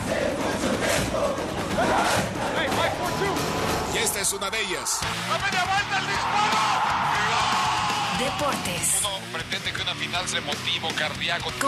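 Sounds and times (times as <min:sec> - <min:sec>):
stadium crowd cheering: 0:00.0 - 0:09.2
speech: 0:04.2 - 0:11.6.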